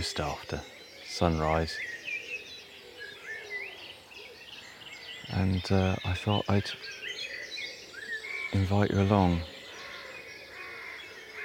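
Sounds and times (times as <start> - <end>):
speech: 0.0 - 2.0, 5.3 - 7.0, 8.5 - 9.5
blackbird singing at dawn: 0.0 - 11.4.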